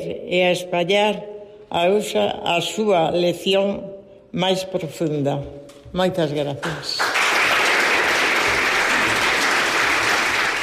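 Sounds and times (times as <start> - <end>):
speech: 0.0 - 7.1
audience applause: 7.0 - 10.6.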